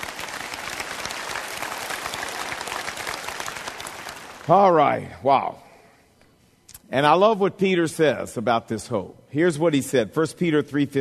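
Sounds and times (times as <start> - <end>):
audience clapping: 0.0 - 4.8
speech: 4.5 - 5.6, 6.9 - 11.0.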